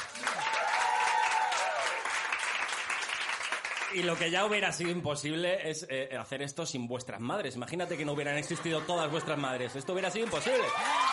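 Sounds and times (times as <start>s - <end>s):
audience applause: 0.0s - 4.6s, 10.0s - 11.1s
speech: 3.9s - 11.1s
laughter: 7.8s - 11.1s.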